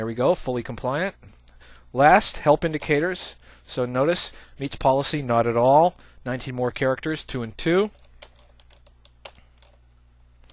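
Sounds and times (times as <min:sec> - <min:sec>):
speech: 0:00.0 - 0:08.0
computer keyboard typing a password: 0:07.9 - 0:09.8.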